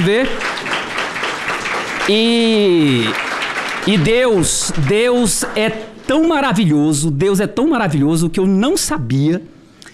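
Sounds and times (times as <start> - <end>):
speech: 0.0 - 0.6, 2.1 - 3.2, 3.9 - 9.5
audience applause: 0.0 - 5.8.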